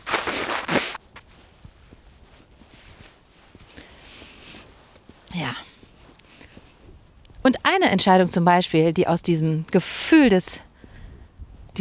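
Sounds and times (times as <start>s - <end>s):
nose blowing: 0.0s - 1.1s
speech: 7.7s - 10.7s.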